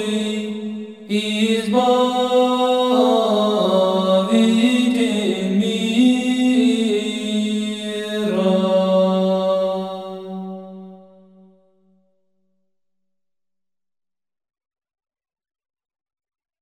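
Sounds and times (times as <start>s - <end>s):
monastery choir chanting a troparion: 0.0s - 11.5s.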